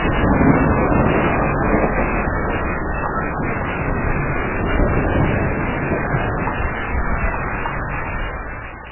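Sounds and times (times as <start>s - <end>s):
distant noisy ocean: 0.0s - 8.9s.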